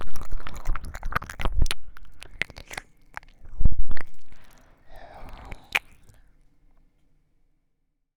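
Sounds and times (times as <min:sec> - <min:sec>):
ear licking in both ears: 0:00.0 - 0:06.4
sniffing near ears: 0:04.4 - 0:06.2.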